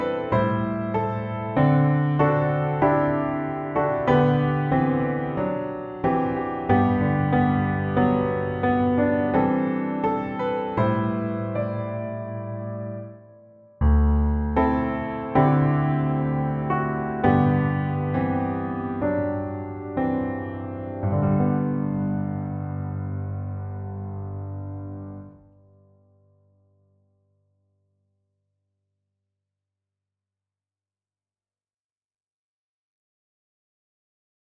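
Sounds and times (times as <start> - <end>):
piano piece: 0.0 - 26.4.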